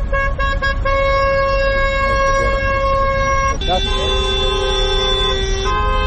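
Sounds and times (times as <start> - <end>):
car horns honking in a taxi drivers' protest convoy in Podgorica: 0.0 - 6.0
traffic rumble: 0.0 - 6.0.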